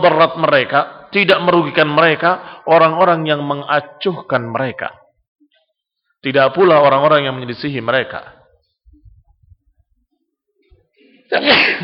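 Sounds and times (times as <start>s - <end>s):
speech: 0.0s - 5.0s, 6.2s - 8.4s, 11.3s - 11.8s
sneeze: 11.3s - 11.8s.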